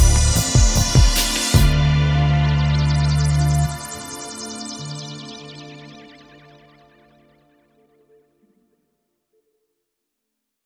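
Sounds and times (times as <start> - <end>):
music beat at 150 BPM: 0.0 - 5.9.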